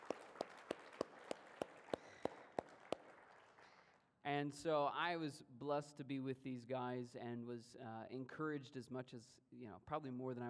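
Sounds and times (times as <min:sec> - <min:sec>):
audience applause: 0:00.0 - 0:03.9
speech: 0:04.2 - 0:10.4.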